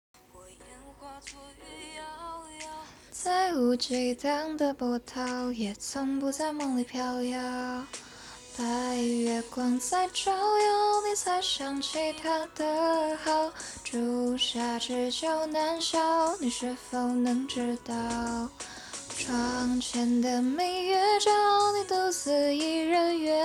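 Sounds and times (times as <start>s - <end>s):
person singing a cover song: 0.2s - 23.4s.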